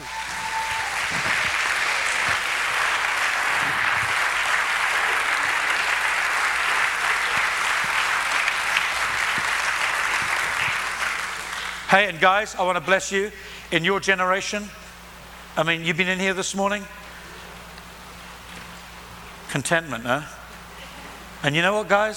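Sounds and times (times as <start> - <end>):
audience applause: 0.0 - 11.9
speech: 11.9 - 14.8, 15.6 - 17.0, 19.5 - 20.4, 21.4 - 22.1.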